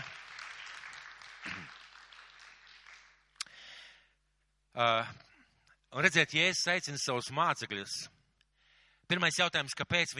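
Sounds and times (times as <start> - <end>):
audience applause: 0.0 - 3.4
speech: 4.8 - 5.2, 5.9 - 8.2, 9.1 - 10.1.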